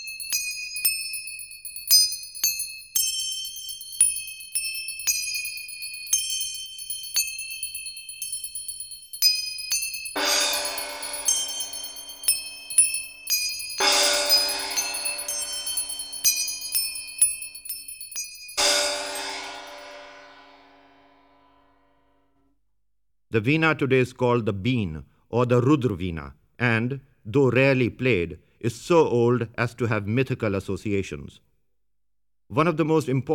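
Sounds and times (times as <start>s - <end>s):
bells ringing: 0.0s - 21.3s
manjira cymbals: 9.8s - 17.7s, 18.5s - 21.8s
gongs: 10.1s - 17.5s, 18.6s - 21.9s
speech: 23.3s - 31.5s, 32.5s - 33.3s.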